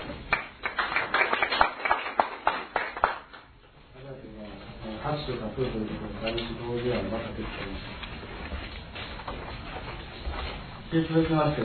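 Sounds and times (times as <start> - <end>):
audience applause: 0.3 - 3.5
speech: 5.1 - 8.1, 10.9 - 11.6.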